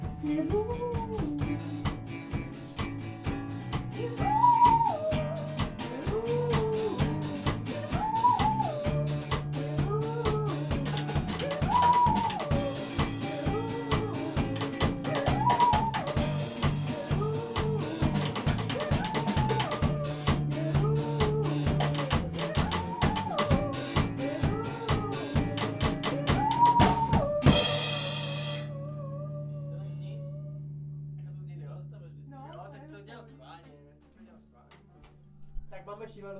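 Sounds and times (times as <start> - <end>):
beatboxing: 0.2 - 27.7.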